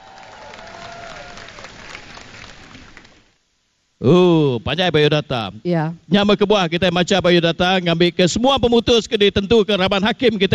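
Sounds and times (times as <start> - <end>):
thunderous audience applause: 0.0 - 3.2
speech: 4.0 - 10.5.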